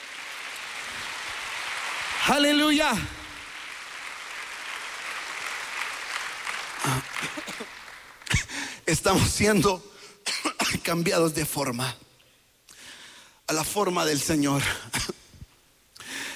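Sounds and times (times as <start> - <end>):
audience applauding: 0.0 - 8.8
speech: 2.3 - 3.2, 8.9 - 9.9, 10.8 - 12.0, 13.5 - 15.1.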